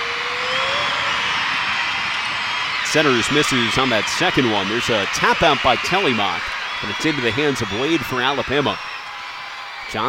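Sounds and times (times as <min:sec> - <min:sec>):
faint rising whistle-like tone: 0:00.0 - 0:04.6
basketball arena crowd cheering: 0:00.0 - 0:10.0
speech: 0:02.9 - 0:09.0.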